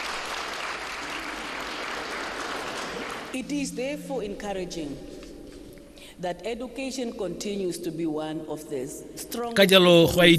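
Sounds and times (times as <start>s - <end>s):
audience applause honouring young people at a formal address: 0.0s - 3.4s
speech: 3.3s - 5.1s, 6.2s - 10.3s.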